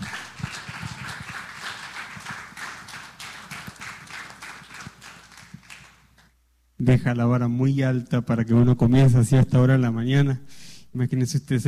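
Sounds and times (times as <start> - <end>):
audience applause: 0.0 - 6.0
speech: 6.8 - 11.6.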